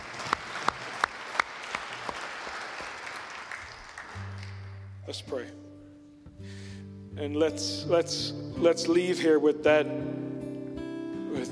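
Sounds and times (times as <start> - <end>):
audience clapping in unison: 0.0 - 4.9
speech: 5.1 - 5.6, 7.2 - 10.2.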